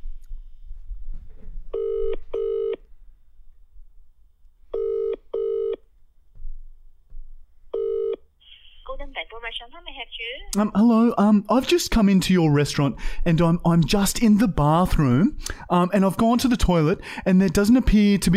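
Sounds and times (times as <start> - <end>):
telephone line ringing: 1.8 - 2.8, 4.8 - 5.8, 7.8 - 8.2
speech: 9.4 - 18.3.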